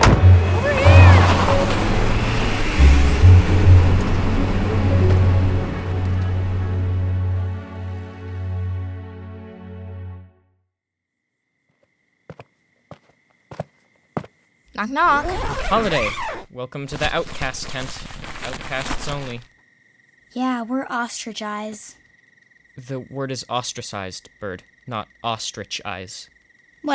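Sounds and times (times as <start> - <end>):
van engine driving away: 0.0 - 7.6
speech: 14.8 - 19.5, 20.3 - 22.0, 22.8 - 26.9.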